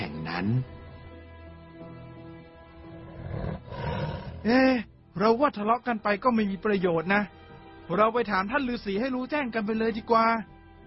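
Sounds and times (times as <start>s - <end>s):
speech: 0.4s - 0.8s, 4.4s - 10.5s
tiger and lion roaring: 2.9s - 4.5s.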